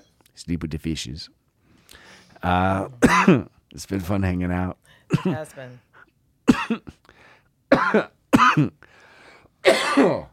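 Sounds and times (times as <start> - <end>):
speech: 0.4 - 1.4, 2.4 - 5.9, 6.7 - 7.0, 7.8 - 9.0, 9.6 - 10.3
harsh hacking coughs: 2.9 - 3.5, 5.1 - 5.6, 6.4 - 7.0, 7.7 - 8.9, 9.6 - 10.3.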